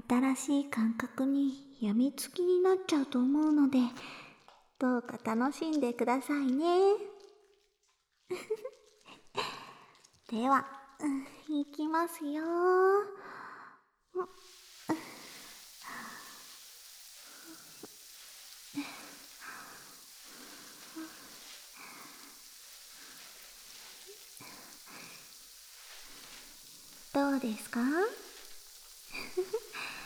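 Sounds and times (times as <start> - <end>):
speech: 0.1 - 4.2, 4.8 - 7.1, 8.3 - 8.8, 10.3 - 13.4, 14.2 - 15.1, 27.2 - 28.2
squishy bursts: 3.4 - 12.5, 14.2 - 30.0
fizzing carbonated foam on skin: 3.5 - 12.6, 14.2 - 30.0
faint breaths: 3.9 - 4.5, 13.1 - 30.0.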